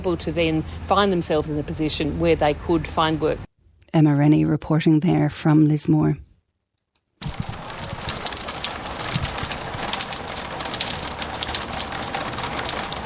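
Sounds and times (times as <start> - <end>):
speech: 0.0 - 6.3
rain falling in the outback bush: 7.2 - 13.0.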